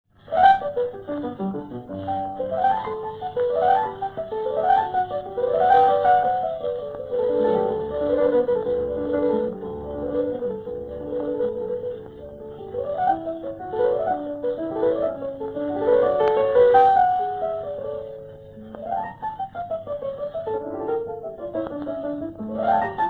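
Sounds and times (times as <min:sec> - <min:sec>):
harpsichord sonata in G major: 0:00.2 - 0:23.0.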